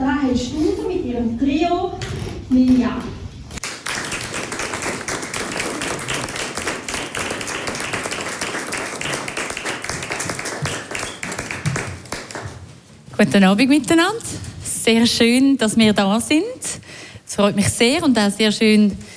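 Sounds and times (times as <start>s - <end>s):
speech: 0.4s - 3.1s, 13.2s - 16.8s, 17.4s - 19.0s
concert audience applause: 3.6s - 12.4s.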